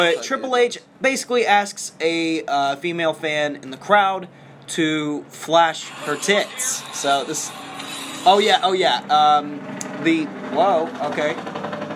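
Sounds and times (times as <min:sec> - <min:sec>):
speech: 0:00.0 - 0:11.7
truck driving past the building: 0:03.2 - 0:11.9.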